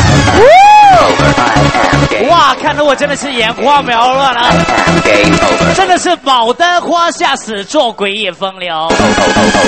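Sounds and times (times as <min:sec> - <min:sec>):
crowd cheering and applauding: 0:00.1 - 0:02.1
rising-and-falling whistle or whoop: 0:00.3 - 0:01.1
speech: 0:02.5 - 0:09.6.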